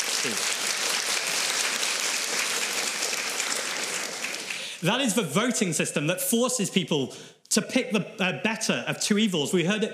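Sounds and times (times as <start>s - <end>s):
audience clapping: 0.0s - 5.0s
speech: 0.2s - 0.5s, 4.8s - 9.9s.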